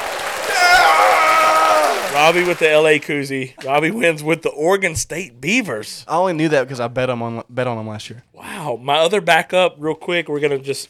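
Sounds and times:
applause: 0.0s - 3.2s
speech: 2.2s - 10.8s.

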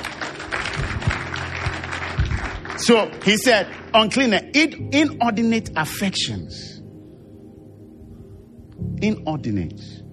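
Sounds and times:
audience clapping: 0.0s - 4.4s
speech: 2.8s - 6.7s, 9.0s - 10.0s.

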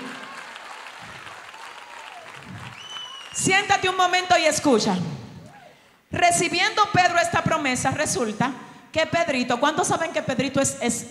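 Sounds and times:
audience applauding: 0.0s - 3.5s
speech: 3.4s - 5.2s, 6.2s - 11.0s.

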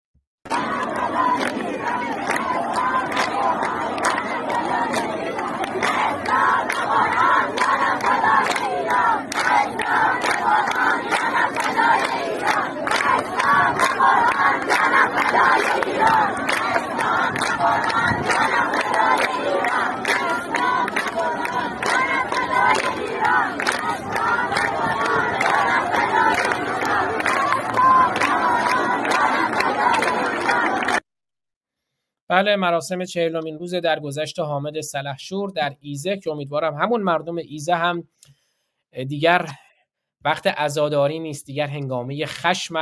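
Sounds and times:
large crowd chanting a protest slogan at a memorial: 0.5s - 31.0s
speech: 32.3s - 39.6s, 40.2s - 42.8s.

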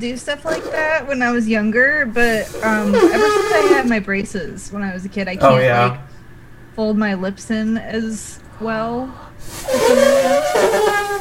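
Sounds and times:
speech: 0.0s - 6.1s, 6.8s - 11.1s
voice imitating an elephant's trumpet: 0.3s - 1.2s, 2.2s - 4.0s, 9.6s - 11.1s.

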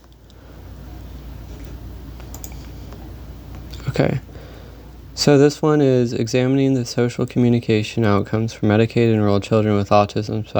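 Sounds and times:
steady low hum: 0.0s - 10.5s
computer mouse clicks: 1.6s - 3.0s
speech: 4.0s - 4.3s, 5.2s - 10.5s.

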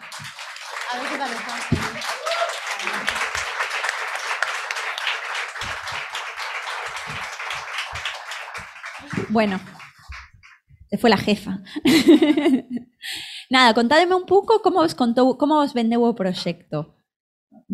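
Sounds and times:
loud crowd applause: 0.0s - 10.6s
speech: 0.9s - 2.2s, 9.3s - 9.8s, 10.9s - 12.9s, 13.5s - 17.0s
faint voices and cheers: 0.9s - 3.2s
laughter: 0.9s - 5.7s, 11.8s - 12.9s.

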